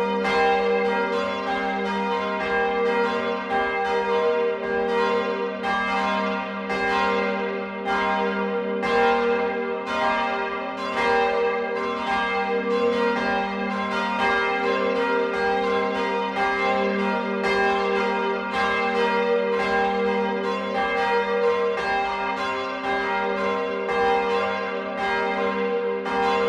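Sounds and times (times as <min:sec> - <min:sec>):
church bells ringing in Friedberg: 0:00.0 - 0:26.4.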